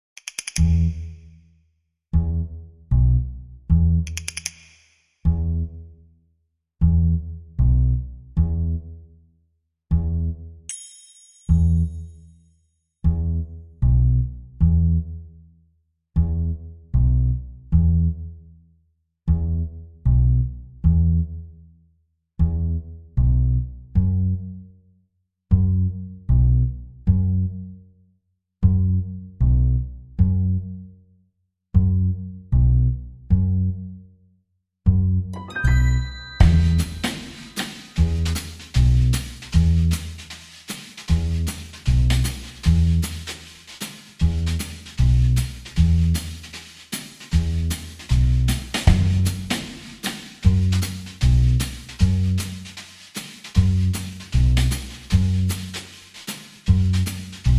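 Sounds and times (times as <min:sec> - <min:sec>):
percussion: 0:00.0 - 0:01.3, 0:04.0 - 0:05.2, 0:10.7 - 0:12.4, 0:35.4 - 0:57.5
bass: 0:00.0 - 0:01.5, 0:02.1 - 0:10.7, 0:11.5 - 0:12.4, 0:13.0 - 0:57.5.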